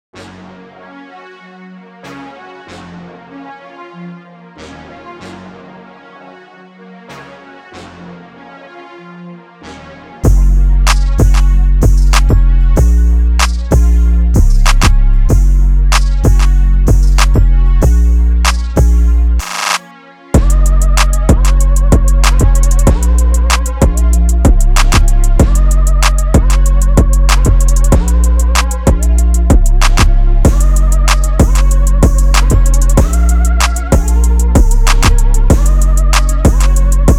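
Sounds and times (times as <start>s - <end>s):
music beat: 10.2s - 19.8s, 20.4s - 37.1s.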